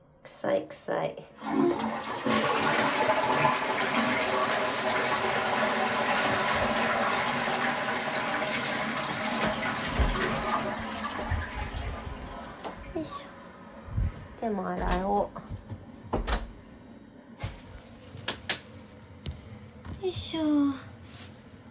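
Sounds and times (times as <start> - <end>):
speech: 0.4 - 2.0, 14.4 - 15.4, 20.1 - 20.9
toilet flushing: 1.4 - 13.9.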